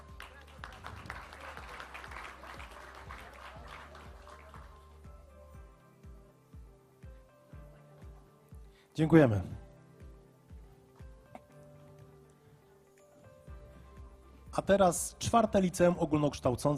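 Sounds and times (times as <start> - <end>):
audience applause: 0.0 - 5.0
speech: 9.0 - 9.6, 14.6 - 16.7.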